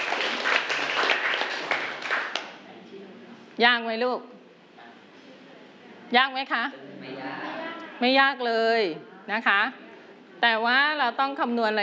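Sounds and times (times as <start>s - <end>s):
small group applauding: 0.0s - 2.6s
speech: 3.6s - 4.4s, 6.1s - 7.3s, 8.0s - 9.8s, 10.4s - 11.8s.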